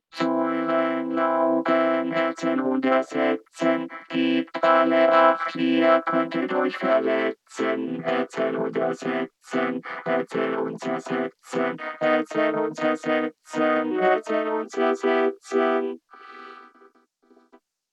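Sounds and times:
vocoder voice: 0.0 - 16.6.

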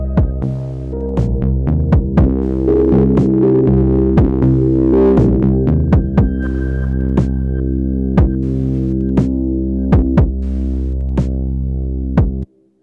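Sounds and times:
distorted drums from a Bastl Bestie: 0.2 - 7.5, 8.2 - 9.4, 9.9 - 11.4, 12.2 - 12.5.

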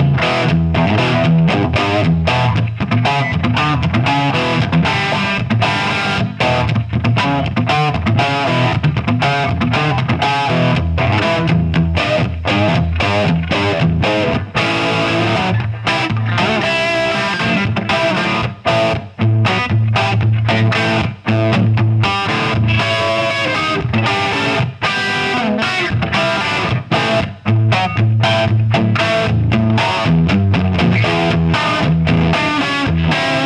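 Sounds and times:
Gibson Les Paul electric guitar through Marshall 2204 amplifier: 0.0 - 33.4.

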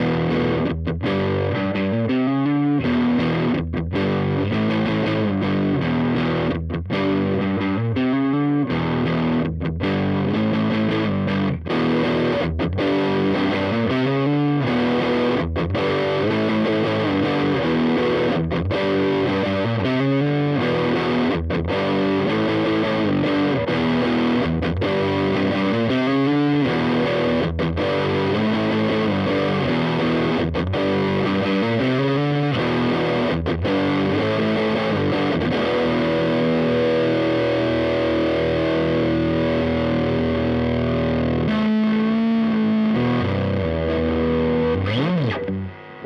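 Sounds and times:
Fender electric guitar with gain and mid boost: 0.0 - 46.0.

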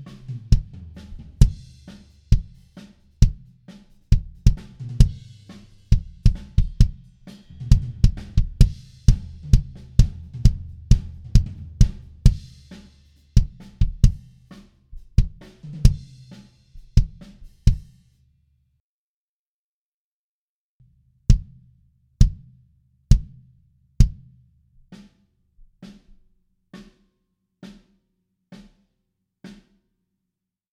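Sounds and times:
kick drum: 2.3 - 2.6, 4.1 - 5.2, 5.9 - 7.0, 7.7 - 12.4, 13.4 - 14.2, 15.2 - 16.1, 17.0 - 17.9, 21.3 - 21.6, 22.2 - 22.5, 23.1 - 23.4, 24.0 - 24.3.

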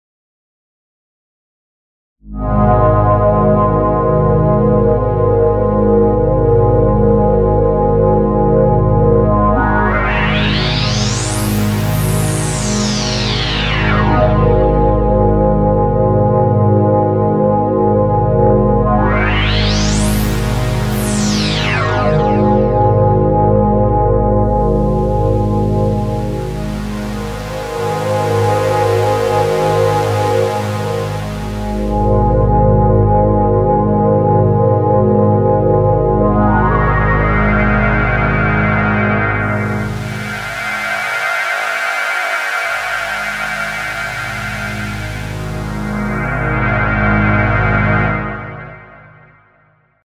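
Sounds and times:
OB-E synth filter at maximum resonance: 2.3 - 49.3.

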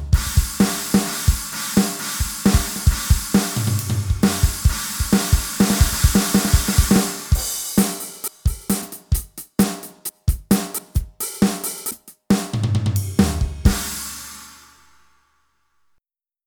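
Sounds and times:
acoustic drum kit on an electronic drum kit: 0.0 - 15.0.

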